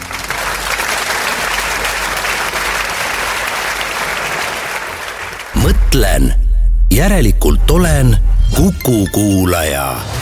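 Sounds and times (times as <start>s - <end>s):
audience applause: 0.0s - 5.6s
speech: 5.9s - 10.2s.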